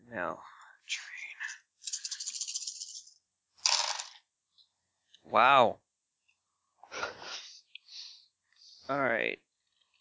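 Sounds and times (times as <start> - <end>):
speech: 0.1 - 1.6, 5.3 - 5.8, 8.9 - 9.4
nine dice being rolled: 1.8 - 4.2.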